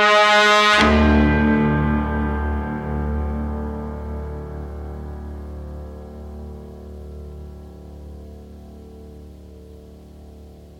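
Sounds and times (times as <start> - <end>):
horn: 0.0 - 7.2.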